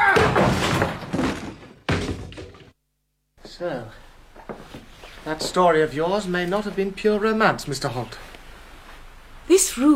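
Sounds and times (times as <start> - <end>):
locked door being broken down: 0.0 - 2.8
speech: 5.2 - 8.3, 9.5 - 9.9.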